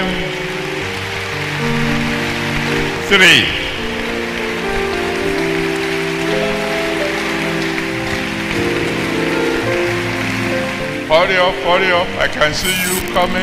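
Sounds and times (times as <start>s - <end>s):
crowd clapping: 0.6s - 11.0s
speech: 3.1s - 3.6s, 11.1s - 13.4s.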